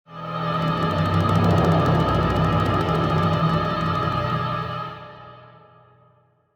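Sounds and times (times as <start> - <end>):
play stinger: 0.4 - 5.0.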